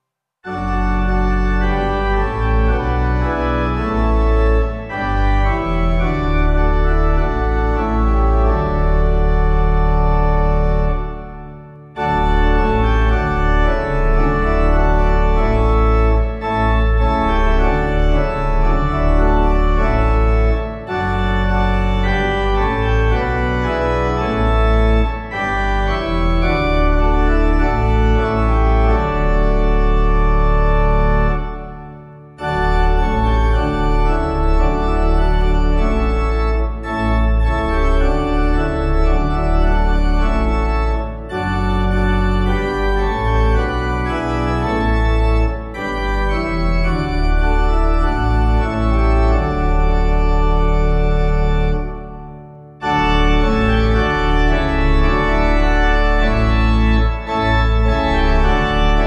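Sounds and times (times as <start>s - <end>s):
organ: 0.4s - 59.0s.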